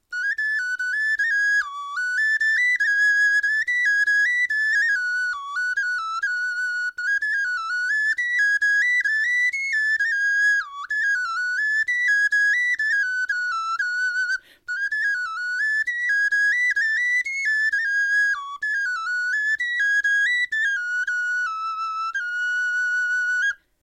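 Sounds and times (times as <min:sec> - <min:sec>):
bone flute melody: 0:00.0 - 0:23.8.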